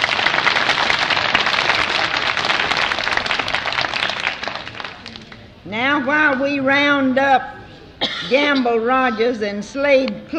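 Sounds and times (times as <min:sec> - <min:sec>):
audience applause for a singer: 0:00.0 - 0:05.4
speech: 0:05.7 - 0:07.6, 0:08.2 - 0:10.3.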